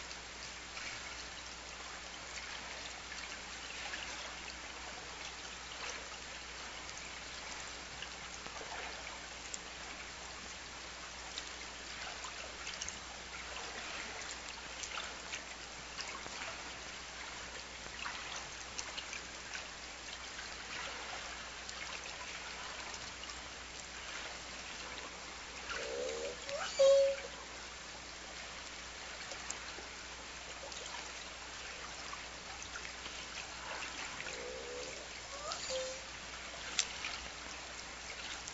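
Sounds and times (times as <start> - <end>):
waves: 0.0 - 38.5
orca S2 calls: 25.8 - 27.3, 34.4 - 36.0.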